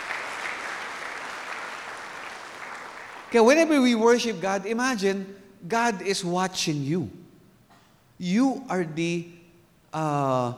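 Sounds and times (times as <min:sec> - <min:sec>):
worship congregation clapping to praise God: 0:00.0 - 0:04.0
speech: 0:03.3 - 0:07.2, 0:08.2 - 0:10.5.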